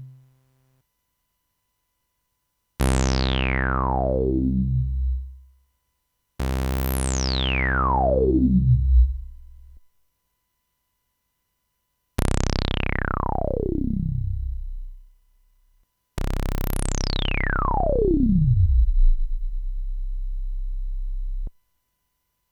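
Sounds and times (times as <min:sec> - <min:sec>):
Moog synthesizer filter envelope sweep: 0:02.8 - 0:05.5, 0:06.4 - 0:09.8, 0:12.2 - 0:15.5, 0:16.2 - 0:21.5.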